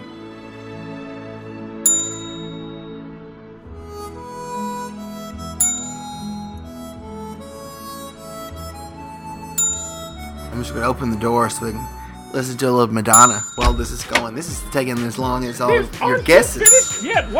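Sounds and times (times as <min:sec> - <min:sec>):
repeated bell dings: 0:01.9 - 0:03.1, 0:05.6 - 0:06.6, 0:09.6 - 0:10.2, 0:13.1 - 0:14.3, 0:16.6 - 0:17.3
speech: 0:10.6 - 0:17.3.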